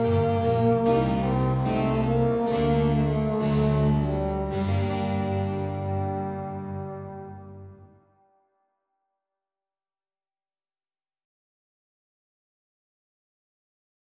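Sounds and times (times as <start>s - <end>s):
sonata adagio in G minor: 0.0s - 8.0s.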